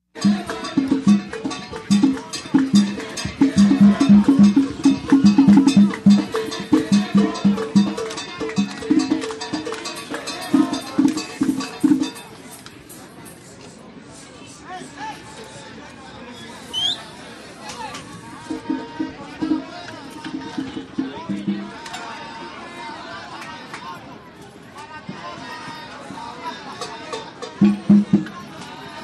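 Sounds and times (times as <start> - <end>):
Central Park festival drums: 0.1 - 13.0, 17.9 - 22.2, 26.0 - 29.0.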